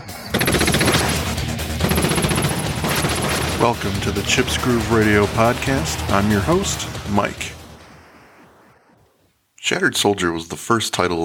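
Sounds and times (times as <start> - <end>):
machine gun fire: 0.3 - 7.0
speech: 3.6 - 7.6, 9.7 - 11.2.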